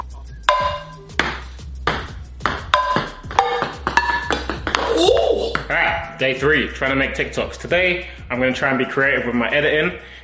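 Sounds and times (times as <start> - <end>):
ping pong ball bouncing into a glass: 0.5 - 5.7
speech: 5.7 - 10.2.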